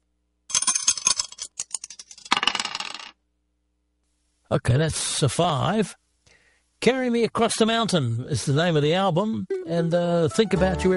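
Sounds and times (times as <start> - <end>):
dice being thrown and rolling: 0.5 - 3.2
speech: 4.5 - 6.0, 6.8 - 10.9.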